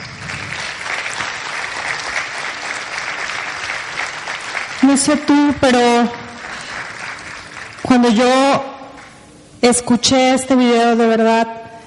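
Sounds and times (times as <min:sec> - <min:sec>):
audience applause: 0:00.0 - 0:05.4, 0:06.1 - 0:07.9
speech: 0:04.9 - 0:06.2, 0:07.9 - 0:08.7, 0:09.6 - 0:11.6.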